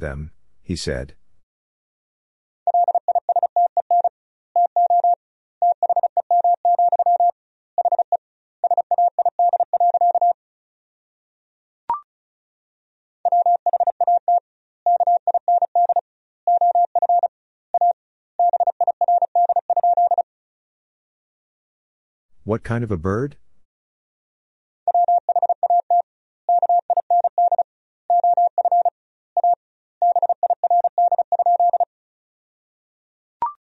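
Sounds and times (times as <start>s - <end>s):
speech: 0.0s - 1.2s, 22.5s - 23.4s
Morse code beeps at 35 wpm: 2.7s - 10.4s, 13.3s - 20.2s, 24.9s - 31.9s.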